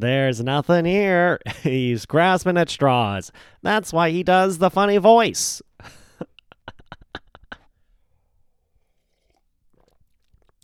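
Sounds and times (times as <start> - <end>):
speech: 0.0 - 6.0
person sipping water: 7.8 - 10.6.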